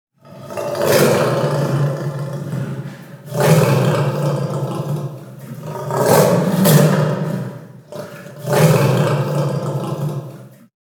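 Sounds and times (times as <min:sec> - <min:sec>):
lion: 0:00.1 - 0:10.8.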